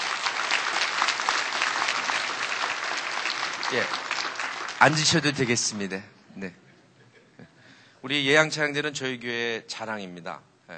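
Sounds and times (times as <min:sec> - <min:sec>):
audience applause: 0:00.0 - 0:05.8
speech: 0:03.7 - 0:04.0, 0:04.8 - 0:06.6, 0:07.4 - 0:10.7.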